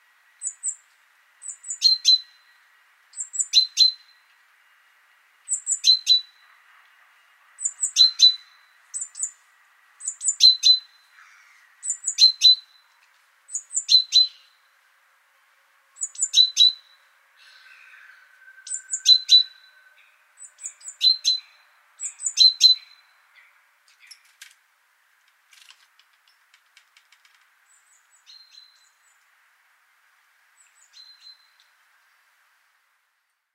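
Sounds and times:
background hiss: 0.0 - 33.5
Great tit calls: 0.4 - 4.3, 5.5 - 6.5, 7.6 - 9.4, 10.0 - 14.7, 16.0 - 24.3.

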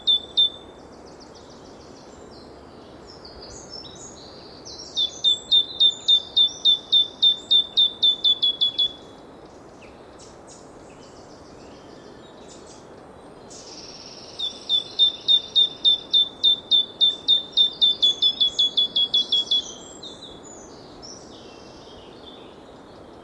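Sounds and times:
Great tit calling: 4.9 - 9.0, 13.5 - 20.2.

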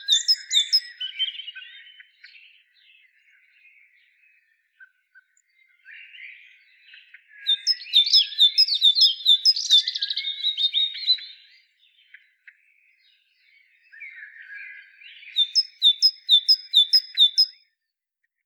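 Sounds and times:
great tit calling: 0.0 - 2.2, 7.0 - 11.6, 15.1 - 17.6
other birds chattering softly: 0.0 - 3.4, 6.4 - 12.4, 14.0 - 17.6.

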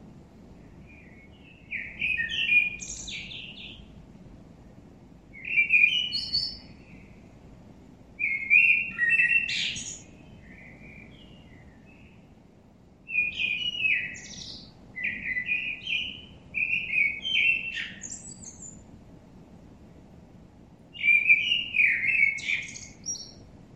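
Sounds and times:
common blackbird Turdus merula song: 0.6 - 4.0, 5.3 - 7.4, 8.2 - 12.4, 13.0 - 18.9, 20.9 - 23.5.

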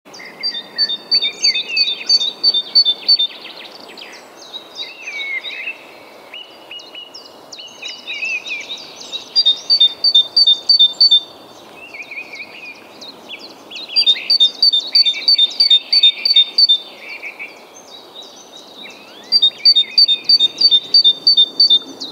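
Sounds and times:
Great tit song: 0.1 - 3.8, 8.7 - 16.9, 18.8 - 22.1
other birds chirping and warbling: 0.1 - 5.7, 6.4 - 22.1.

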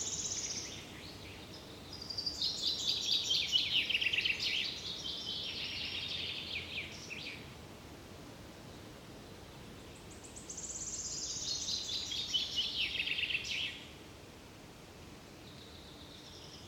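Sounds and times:
common chaffinch Fringilla coelebs song: 0.0 - 7.5, 8.6 - 14.0, 15.4 - 16.6.

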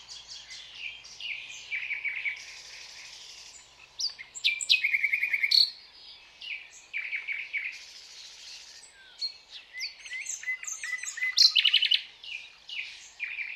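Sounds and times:
common nightingale Luscinia megarhynchos song of rapid repeated notes and buzzy trills: 0.0 - 13.5.

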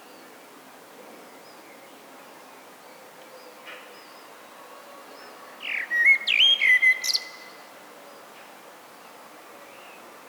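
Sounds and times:
common blackbird singing: 5.6 - 7.5.

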